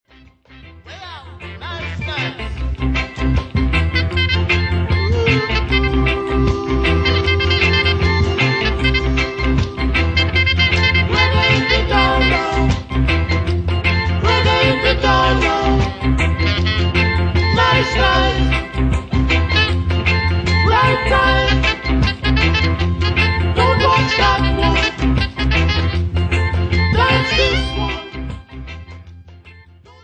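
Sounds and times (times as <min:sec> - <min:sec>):
reggae music: 0:00.1 - 0:30.0.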